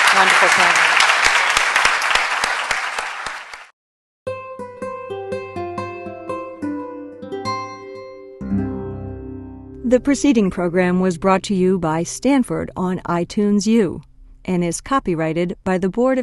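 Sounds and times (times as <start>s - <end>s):
audience round of applause: 0.0s - 3.7s
speech: 0.2s - 0.9s, 9.9s - 16.2s.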